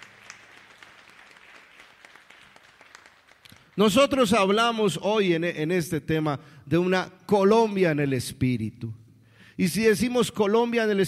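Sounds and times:
crowd applauding: 0.0 - 4.1
speech: 3.8 - 9.0, 9.6 - 11.0.

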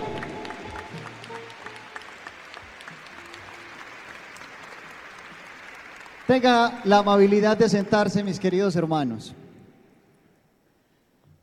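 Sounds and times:
audience applause: 0.0 - 8.5
speech: 6.3 - 9.4.

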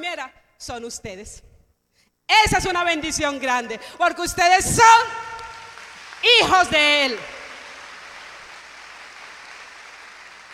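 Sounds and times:
speech: 0.1 - 1.5, 2.3 - 5.4, 6.2 - 7.4
audience applause: 5.5 - 10.5.

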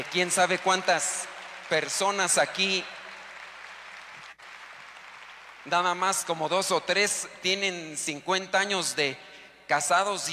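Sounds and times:
speech: 0.0 - 3.0, 5.6 - 10.3
faint audience applause honoring long-married couples: 0.0 - 6.4.

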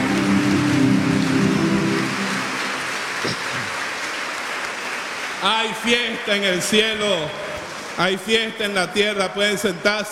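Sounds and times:
audience applause: 0.0 - 6.4
speech: 5.4 - 7.4, 8.0 - 10.1.

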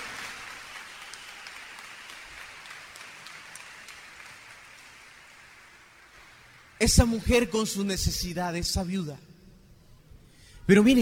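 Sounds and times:
church congregation applauding: 0.0 - 6.8
speech: 6.8 - 9.3, 10.7 - 11.0.

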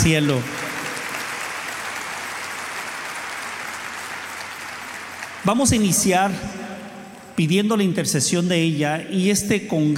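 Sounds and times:
speech: 0.0 - 0.6, 5.4 - 6.7, 7.4 - 9.9
audience applause: 0.0 - 6.0.

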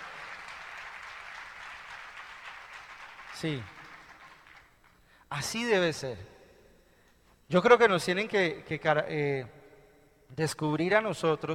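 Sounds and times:
audience applause: 0.0 - 4.7
speech: 3.4 - 3.8, 5.3 - 6.4, 7.5 - 9.6, 10.3 - 11.5.

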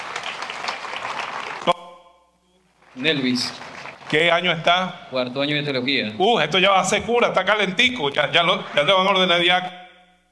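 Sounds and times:
audience applause for a seminarian at a seminary gathering: 0.0 - 1.8, 2.8 - 4.9, 8.2 - 9.3
speech: 3.0 - 9.8.

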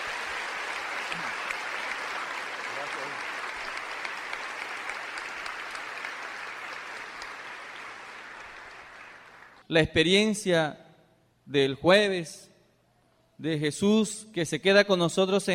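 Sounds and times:
audience applause: 0.0 - 9.6
speech: 9.7 - 10.8, 11.5 - 12.5, 13.4 - 15.5.

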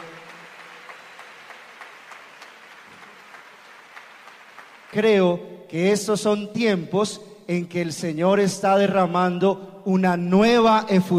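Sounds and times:
audience applauding: 0.0 - 5.4
speech: 4.9 - 11.1.

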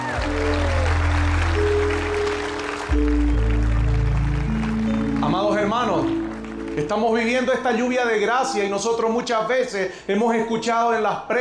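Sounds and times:
audience applause: 0.0 - 8.0
speech: 6.8 - 11.3.

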